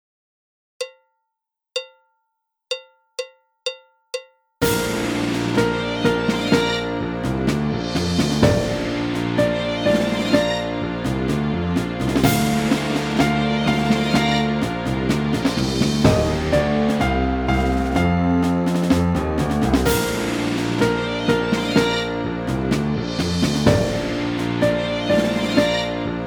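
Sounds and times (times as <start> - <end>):
trombone: 4.6 - 26.2
trumpet: 4.6 - 26.2.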